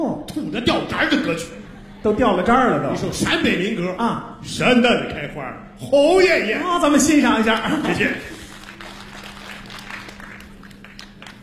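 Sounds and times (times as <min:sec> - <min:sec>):
speech: 0:00.0 - 0:08.4
laughter: 0:01.0 - 0:03.9, 0:07.3 - 0:08.8
audience applause: 0:07.6 - 0:11.4.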